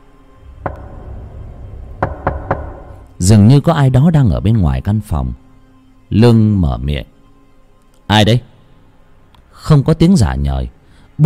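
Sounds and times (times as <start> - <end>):
knocking on a door: 0.6 - 3.2
speech: 3.2 - 5.4, 6.1 - 7.1, 8.1 - 8.5, 9.6 - 11.2.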